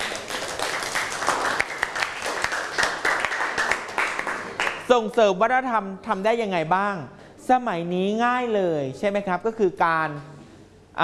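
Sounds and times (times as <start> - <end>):
crowd applauding: 0.0 - 4.9
speech: 4.9 - 10.4.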